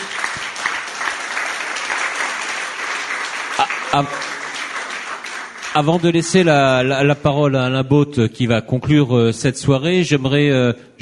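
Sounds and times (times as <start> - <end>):
audience applause: 0.0 - 6.8
speech: 3.6 - 4.3, 5.8 - 11.0.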